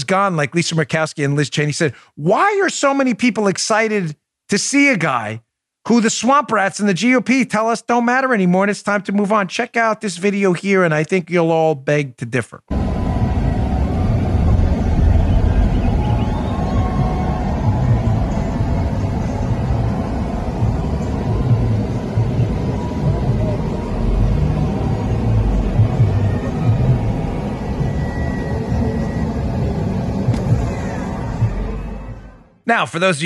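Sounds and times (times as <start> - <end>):
speech: 0.0 - 12.8, 32.7 - 33.2
large crowd roar heard from inside a vehicle: 12.7 - 32.6.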